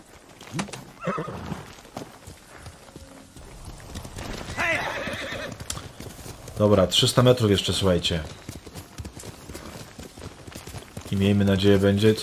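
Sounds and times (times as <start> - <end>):
horse hoofbeats in a video game: 0.0 - 12.2
speech: 0.5 - 1.8, 6.6 - 8.4, 11.2 - 12.2
horse whinny in a video game: 1.0 - 1.7, 4.5 - 5.6.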